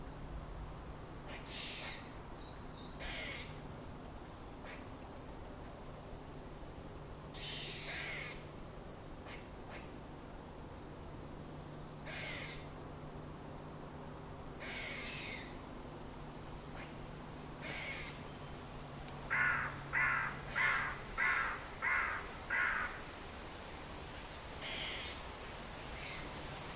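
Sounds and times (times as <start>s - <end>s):
forest ambience: 0.0s - 26.7s.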